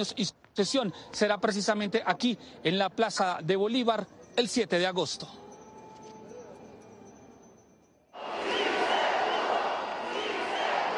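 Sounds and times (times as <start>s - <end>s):
speech: 0.0s - 5.4s
crowd shouting with joy: 8.2s - 10.9s.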